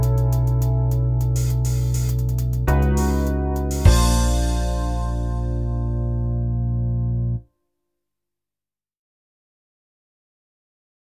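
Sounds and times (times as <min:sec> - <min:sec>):
generic music: 0:00.0 - 0:06.8.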